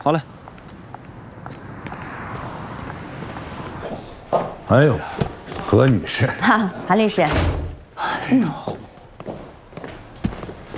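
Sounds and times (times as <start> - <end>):
speech: 0.0 - 0.4, 4.7 - 5.1, 5.7 - 7.5, 8.3 - 8.8
car driving away: 0.0 - 7.0
wind: 0.0 - 10.7.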